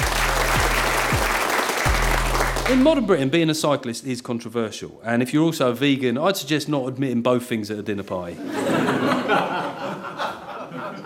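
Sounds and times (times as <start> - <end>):
audience applause: 0.0 - 3.0
speech: 2.7 - 9.8
laughter: 8.4 - 11.0.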